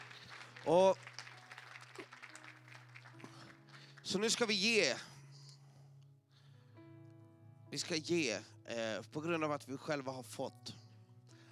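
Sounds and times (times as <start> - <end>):
audience applause: 0.0 - 4.8
speech: 0.6 - 1.1, 4.1 - 5.1, 7.8 - 10.7.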